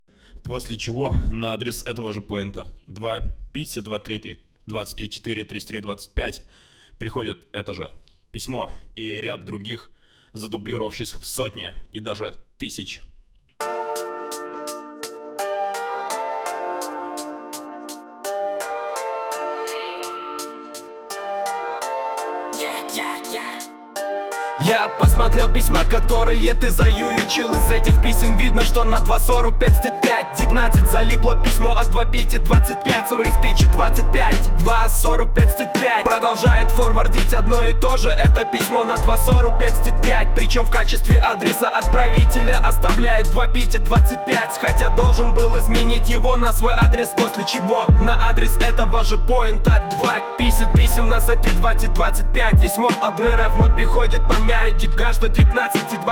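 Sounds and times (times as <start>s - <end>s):
rap music: 13.6s - 56.0s.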